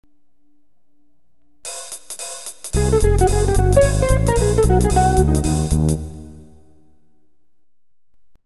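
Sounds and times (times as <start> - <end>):
jazz music: 1.7 - 6.7.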